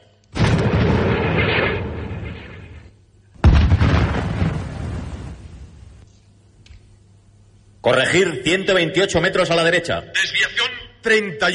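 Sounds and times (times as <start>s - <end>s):
heavy artillery gun blasts in the Huachun mountains: 0.4s - 5.5s
speech: 7.9s - 11.5s.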